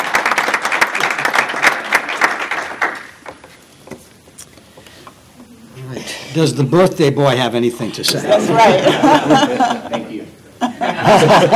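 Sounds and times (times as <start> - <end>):
people applauding for a birthday: 0.0 - 3.5
speech: 6.4 - 10.4, 11.0 - 11.5
laughter: 8.0 - 11.5.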